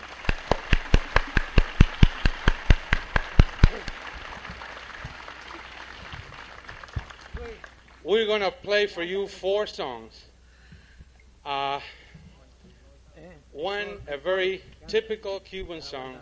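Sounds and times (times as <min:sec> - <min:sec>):
audience applause: 0:00.0 - 0:08.2
speech: 0:08.1 - 0:10.3, 0:11.4 - 0:12.0, 0:13.6 - 0:16.1.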